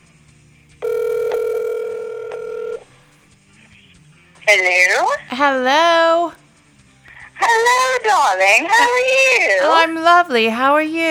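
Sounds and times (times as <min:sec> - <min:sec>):
telephone call connecting tone: 0:00.8 - 0:02.9
speech: 0:04.5 - 0:06.4, 0:07.4 - 0:11.0.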